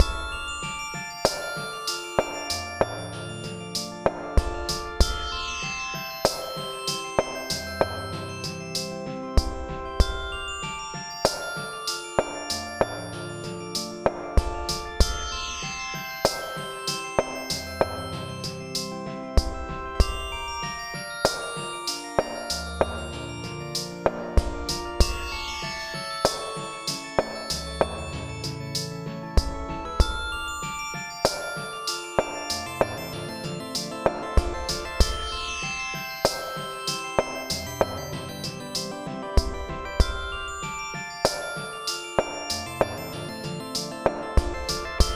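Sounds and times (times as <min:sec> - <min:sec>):
quirky fantasy music: 0:00.0 - 0:45.1.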